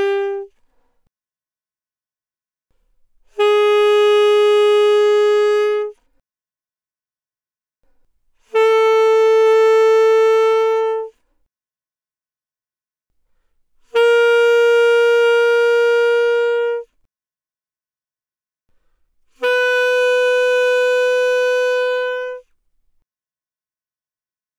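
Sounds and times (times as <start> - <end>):
alto saxophone notes without vibrato, fortissimo, C4 to B4: 0.0 - 0.6, 3.3 - 6.0, 8.4 - 11.2, 13.8 - 17.0, 19.3 - 22.6.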